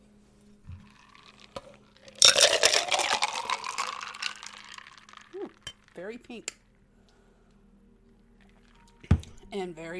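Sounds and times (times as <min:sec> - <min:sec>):
cocktail pouring into a glass: 0:00.7 - 0:05.9
speech: 0:06.0 - 0:06.6, 0:09.5 - 0:09.9.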